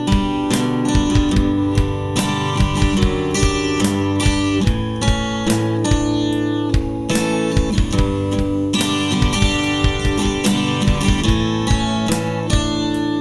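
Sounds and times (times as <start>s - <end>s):
ambient acoustic guitar: 0.0s - 13.1s.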